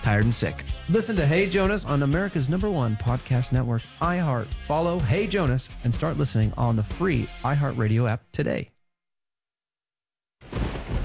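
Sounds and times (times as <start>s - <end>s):
speech: 0.0s - 8.7s
pouring rain: 10.4s - 11.0s
thunder: 10.4s - 11.0s.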